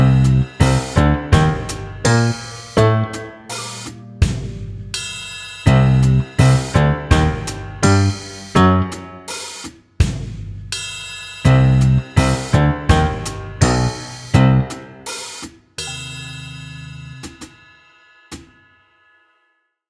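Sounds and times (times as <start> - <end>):
spy music loop: 0.0 - 9.6, 11.5 - 17.5.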